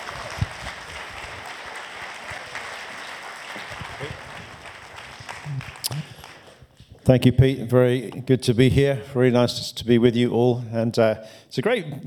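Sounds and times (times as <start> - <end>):
church audience applause welcoming a bishop: 0.0 - 6.9
speech: 7.1 - 12.0.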